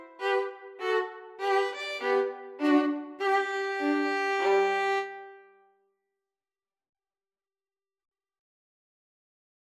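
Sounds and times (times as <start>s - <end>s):
violin duet playing a minuet: 0.0s - 5.5s.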